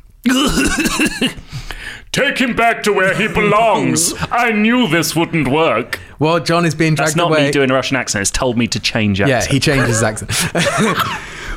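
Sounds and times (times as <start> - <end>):
speech: 0.2 - 1.4, 2.1 - 11.4
person coughing while getting up: 0.3 - 1.5, 10.6 - 11.3
laughter: 3.0 - 4.4, 9.2 - 11.4.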